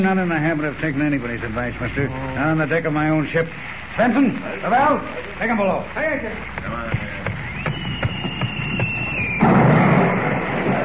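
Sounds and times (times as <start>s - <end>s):
speech: 0.0s - 7.1s
shell whistling through the air: 7.2s - 9.6s
loud blast of a shell fired across a ship's bow: 7.4s - 10.8s.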